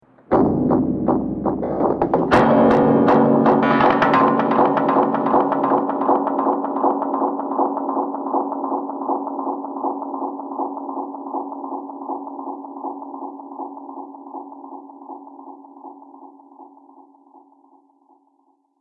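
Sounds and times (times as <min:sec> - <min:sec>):
distorted hits: 0:00.3 - 0:07.4
distorted knocks: 0:00.3 - 0:10.8.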